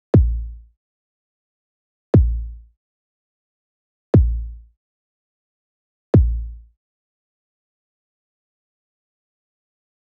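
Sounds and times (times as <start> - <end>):
kick drum: 0.0 - 0.6, 2.2 - 2.7, 4.2 - 4.7, 6.2 - 6.6.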